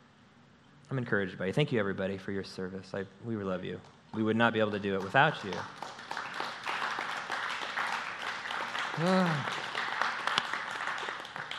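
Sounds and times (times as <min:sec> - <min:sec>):
speech: 0:00.9 - 0:06.0, 0:09.0 - 0:09.6
audience clapping: 0:04.2 - 0:11.5.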